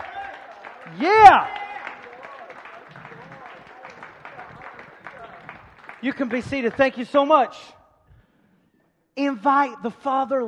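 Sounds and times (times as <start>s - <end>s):
audience clapping: 0.0s - 7.5s
speech: 0.9s - 1.6s, 6.0s - 7.8s, 9.2s - 10.4s.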